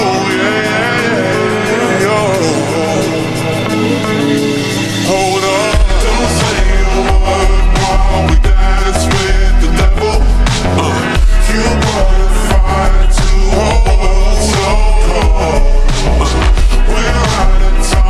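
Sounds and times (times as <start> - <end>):
bass sound: 0.2 - 18.0.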